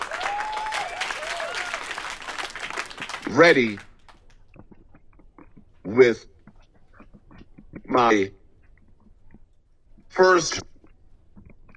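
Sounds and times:
audience applause: 0:00.0 - 0:04.4
speech: 0:03.3 - 0:03.9, 0:05.9 - 0:06.3, 0:08.0 - 0:08.4, 0:10.2 - 0:10.7.

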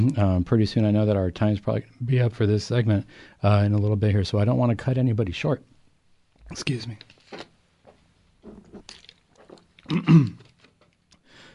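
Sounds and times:
speech: 0:00.0 - 0:05.7, 0:06.5 - 0:07.5, 0:09.9 - 0:10.5
person drinking water: 0:08.4 - 0:11.5.

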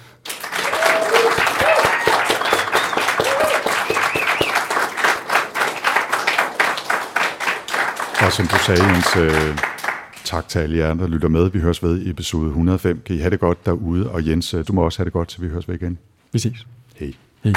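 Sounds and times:
audience applause and clapping: 0:00.2 - 0:10.2
speech: 0:08.4 - 0:09.7, 0:10.3 - 0:17.5.

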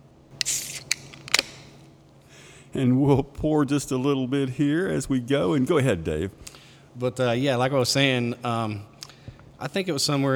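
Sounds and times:
beer can opening: 0:00.4 - 0:01.9
speech: 0:02.8 - 0:08.9, 0:09.6 - 0:10.3.

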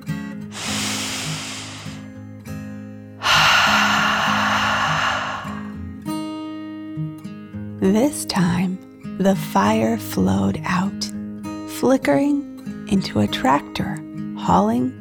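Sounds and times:
deep dragon breath in and out: 0:00.5 - 0:02.1, 0:03.2 - 0:05.8
speech: 0:07.8 - 0:11.1, 0:11.8 - 0:14.9.

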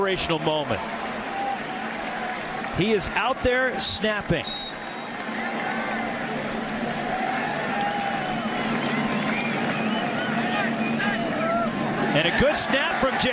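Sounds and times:
speech: 0:00.0 - 0:01.0, 0:02.8 - 0:04.7, 0:12.2 - 0:13.3
football stadium crowd cheering: 0:00.0 - 0:13.3
high whistles from stadium crowd: 0:04.4 - 0:05.2, 0:08.9 - 0:11.5.

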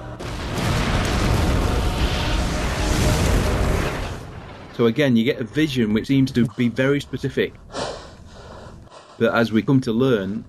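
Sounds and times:
drones firing and exploding: 0:00.0 - 0:06.0
heavy low rumble: 0:00.0 - 0:08.9
speech: 0:04.8 - 0:07.7, 0:09.2 - 0:10.4.

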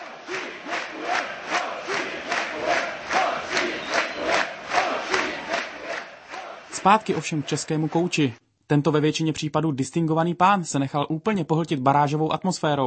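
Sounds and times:
football fans chanting and cheering after a playoff win: 0:00.0 - 0:08.4
speech: 0:06.8 - 0:12.8.

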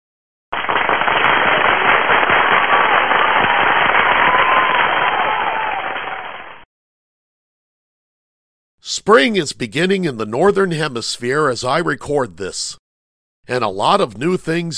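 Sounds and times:
crowd applause: 0:00.5 - 0:06.6
speech: 0:08.9 - 0:12.8, 0:13.5 - 0:14.7.

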